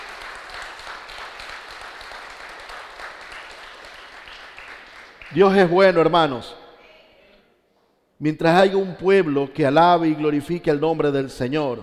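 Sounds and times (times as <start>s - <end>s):
audience applauding: 0.0s - 5.6s
speech: 5.3s - 6.6s, 8.2s - 11.8s.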